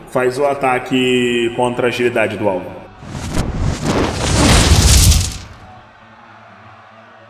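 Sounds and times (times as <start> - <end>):
speech: 0.1 - 2.8
fireball explosion sound effect: 3.0 - 5.7.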